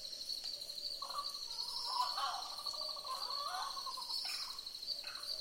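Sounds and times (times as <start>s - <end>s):
boobook owls hooting in a chorus: 1.0s - 5.3s.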